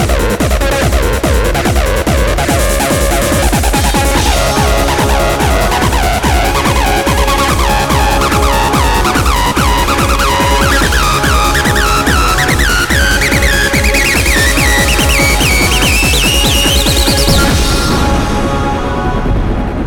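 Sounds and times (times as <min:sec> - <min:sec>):
acid electronic music: 0:00.0 - 0:19.8.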